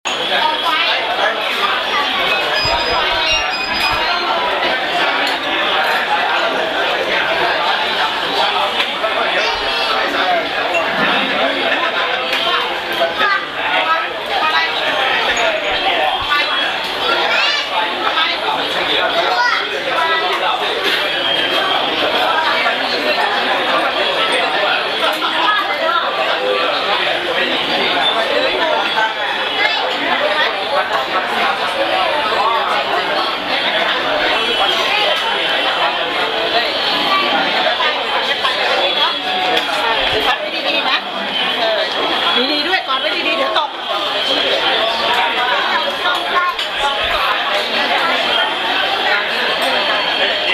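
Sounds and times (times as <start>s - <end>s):
street ambience in Bangkok Chinatown, Thailand: 0.1s - 50.5s.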